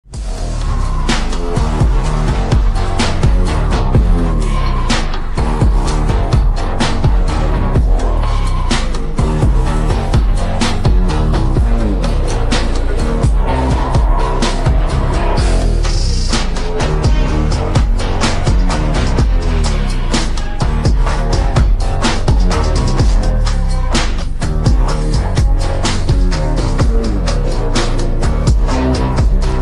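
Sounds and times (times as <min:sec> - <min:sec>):
background music ringtone: 0:00.0 - 0:29.6.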